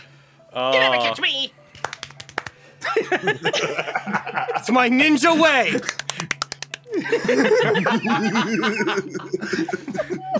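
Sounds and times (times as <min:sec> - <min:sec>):
speech: 0:00.5 - 0:01.6, 0:03.0 - 0:06.0, 0:07.1 - 0:10.3
fast hand clapping: 0:01.7 - 0:02.6, 0:05.7 - 0:07.0
laughter: 0:02.8 - 0:10.3.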